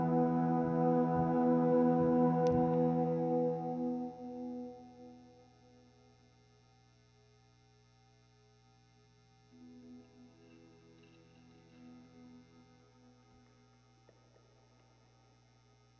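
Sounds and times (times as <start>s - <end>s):
guitar recorded with SM57 microphone: 0.0s - 5.7s, 9.6s - 14.2s.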